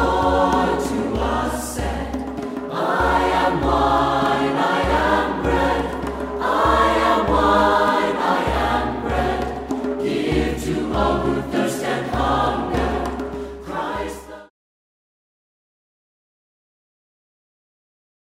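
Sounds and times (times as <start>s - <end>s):
religious song: 0.0s - 14.5s.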